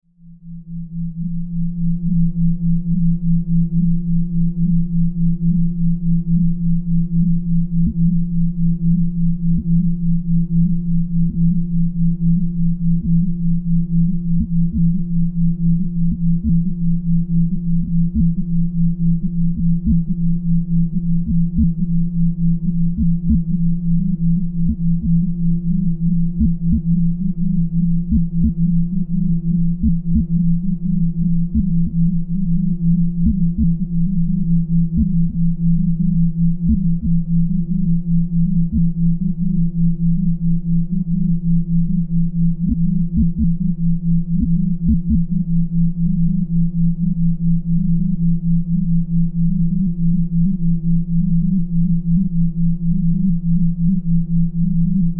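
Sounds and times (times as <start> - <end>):
simple sine tone: 0.0 - 55.1.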